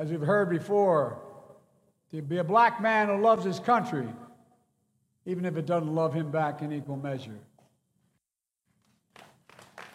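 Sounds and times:
speech: 0.0 - 1.3, 2.1 - 4.2, 5.2 - 7.5
faint sparse applause from an audience: 9.2 - 9.9.

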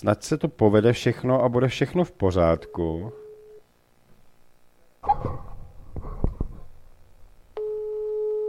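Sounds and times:
speech: 0.0 - 3.2
telephone line tone: 2.6 - 3.6, 7.6 - 8.4.

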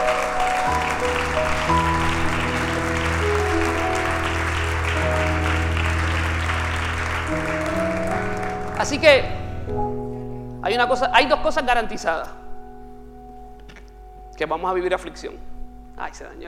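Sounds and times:
crowd applause: 0.0 - 9.6
sustained keyboard or organ chords: 0.0 - 16.4
speech: 8.8 - 9.4, 10.7 - 12.4, 14.4 - 16.4.

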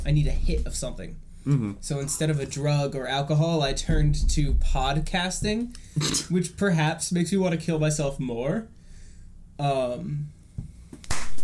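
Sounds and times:
speech: 0.0 - 8.8, 9.6 - 10.4
person humming: 1.5 - 1.8.

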